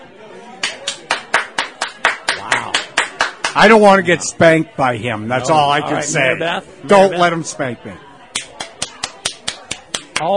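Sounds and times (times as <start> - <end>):
man clapping hands in a loudest-clapper contest in Sitka: 0.6 - 3.6, 8.3 - 10.3
speech: 3.6 - 8.1, 10.2 - 10.3.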